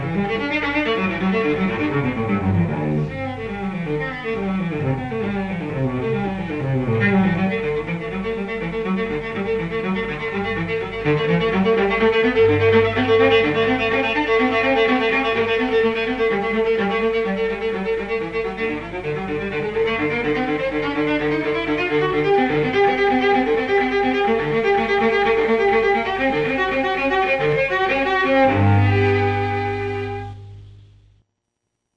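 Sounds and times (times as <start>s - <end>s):
solo cello prelude in C major: 0.0s - 31.0s.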